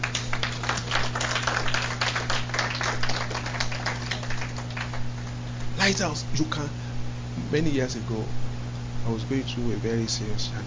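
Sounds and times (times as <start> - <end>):
audience clapping: 0.0 - 5.7
low constant electrical hum: 0.0 - 10.6
speech: 5.9 - 6.8, 7.5 - 10.6.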